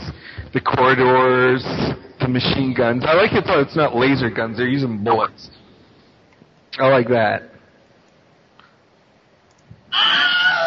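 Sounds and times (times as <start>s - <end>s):
speech: 0.5s - 5.6s, 6.8s - 7.5s
Wilhelm scream sound effect: 9.9s - 10.6s.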